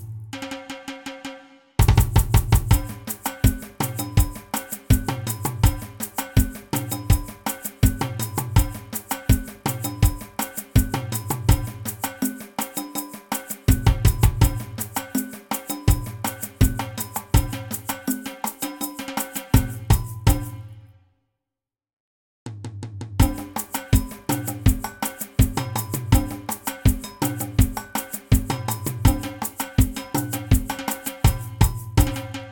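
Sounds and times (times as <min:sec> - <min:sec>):
samba reggae music: 0:01.9 - 0:20.6, 0:23.2 - 0:32.5.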